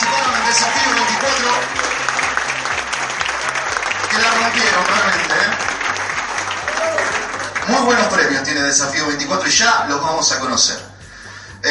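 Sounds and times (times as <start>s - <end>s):
audience applause: 0.0s - 8.4s
speech: 7.9s - 10.8s.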